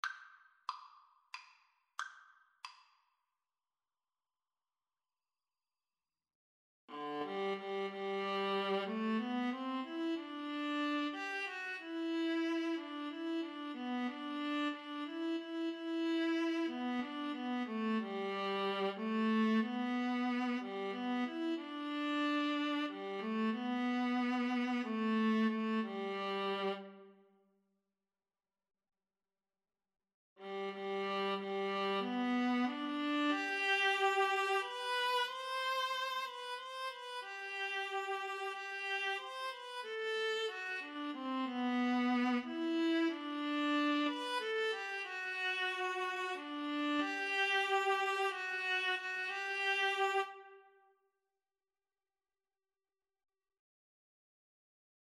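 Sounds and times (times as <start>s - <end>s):
viola: 6.9s - 27.2s, 30.4s - 50.7s.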